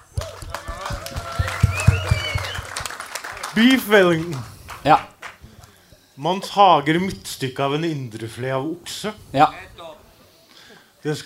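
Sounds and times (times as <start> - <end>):
group applause: 0.0 - 5.9
speech: 3.6 - 5.1, 6.2 - 9.7, 11.0 - 11.2.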